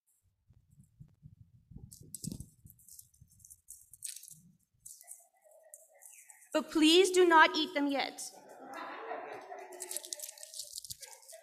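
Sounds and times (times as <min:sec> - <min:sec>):
speech: 0:02.0 - 0:02.4, 0:06.6 - 0:08.4
chocolate foil wrapper crinkling as slowly unwrapped: 0:02.2 - 0:05.2, 0:09.7 - 0:11.4
laughter: 0:08.3 - 0:11.4.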